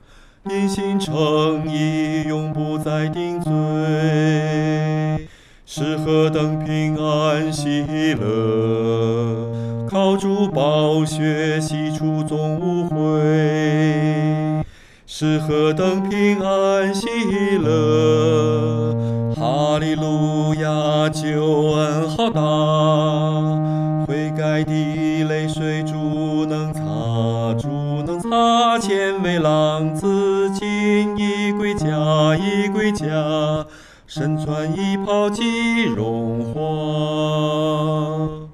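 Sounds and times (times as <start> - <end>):
solo singing: 0.4 - 38.5.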